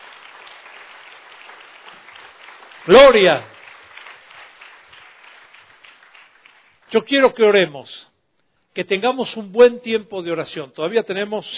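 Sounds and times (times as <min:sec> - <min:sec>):
audience applause: 0:00.0 - 0:06.9
speech: 0:02.8 - 0:03.5, 0:06.9 - 0:08.1, 0:08.8 - 0:11.5.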